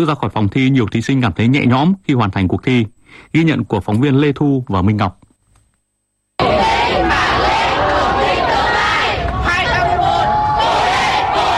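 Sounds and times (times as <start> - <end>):
speech: 0.0 - 5.2
volunteers and parents cheering and shouting for students leaving a grade 10 exam: 6.4 - 11.5.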